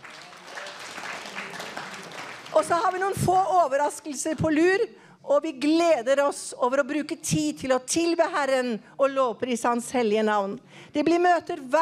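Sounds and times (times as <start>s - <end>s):
audience applause: 0.0s - 3.1s
speech: 2.6s - 11.8s.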